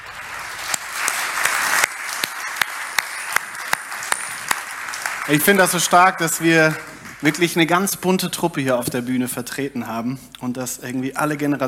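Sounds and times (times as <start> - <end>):
audience applause: 0.0 - 8.1
speech: 5.3 - 11.6.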